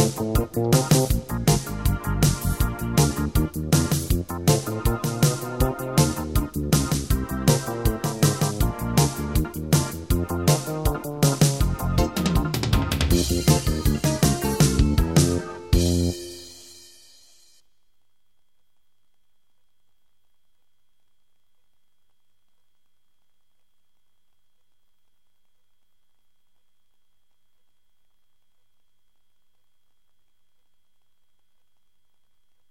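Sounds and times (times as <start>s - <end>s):
blues backing track in F with eight-beat rhythm: 0.0s - 16.7s.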